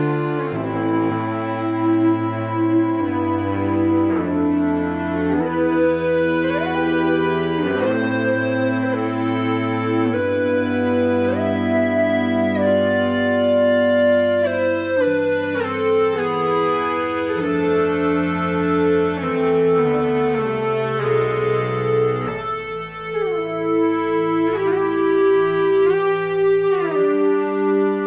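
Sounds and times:
Ebow guitar ensemble: 0.0s - 28.0s.

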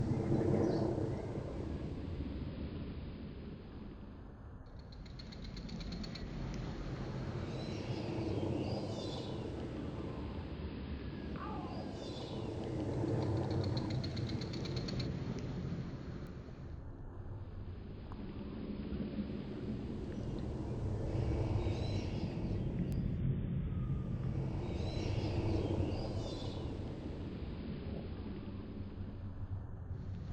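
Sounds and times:
ambient plane noise: 0.0s - 30.3s.

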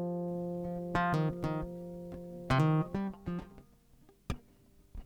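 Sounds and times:
groove music: 0.2s - 2.9s.

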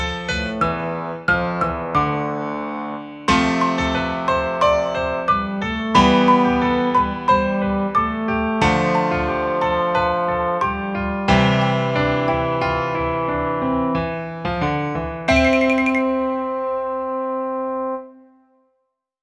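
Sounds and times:
uplifting piano music: 0.0s - 18.1s.

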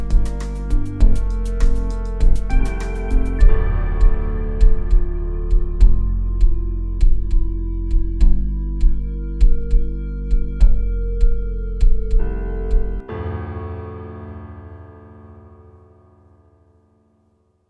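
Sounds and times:
drum machine groove: 0.0s - 13.0s.

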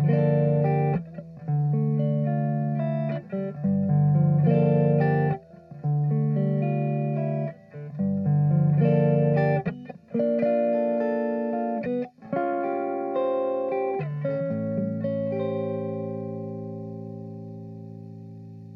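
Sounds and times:
jazzy guitar arpeggio in D minor: 0.0s - 18.7s.

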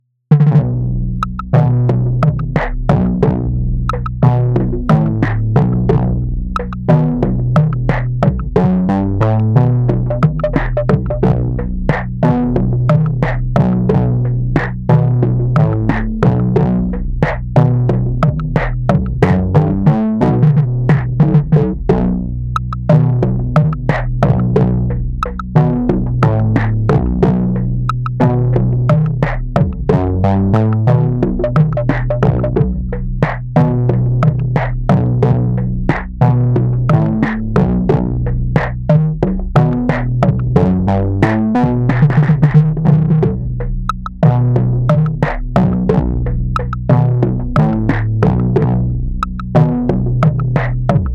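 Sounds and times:
90s rhythm section effects: 0.3s - 51.1s.

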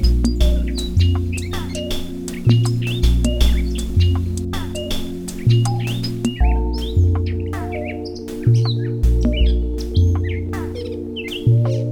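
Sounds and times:
birds singing: 0.2s - 11.8s.

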